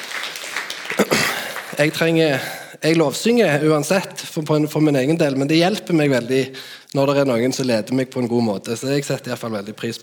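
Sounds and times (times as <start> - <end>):
church congregation applauding the worship leader and music team: 0.0 - 2.5
speech: 1.8 - 10.0.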